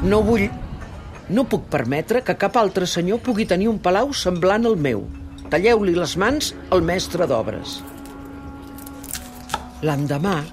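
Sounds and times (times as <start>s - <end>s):
speech: 0.0s - 0.6s, 1.3s - 8.0s, 9.8s - 10.5s
knife chopping onion: 8.8s - 10.5s.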